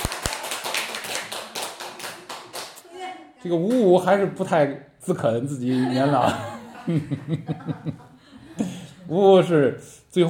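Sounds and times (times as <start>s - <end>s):
audience applause: 0.0s - 2.8s
speech: 3.4s - 10.2s
laughter: 5.6s - 9.0s.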